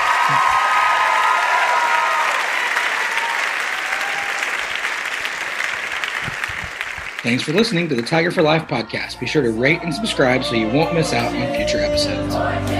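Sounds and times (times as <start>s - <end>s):
audience applause: 0.0s - 9.5s
speech: 0.3s - 0.6s, 7.2s - 12.7s.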